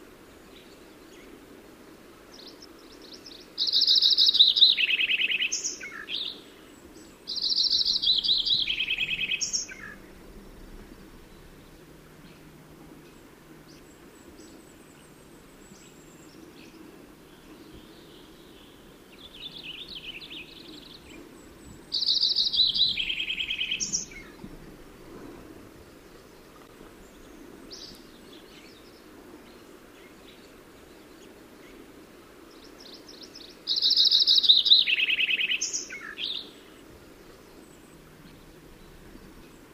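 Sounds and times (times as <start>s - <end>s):
Lincoln's sparrow: 2.4s - 24.4s, 32.6s - 39.7s.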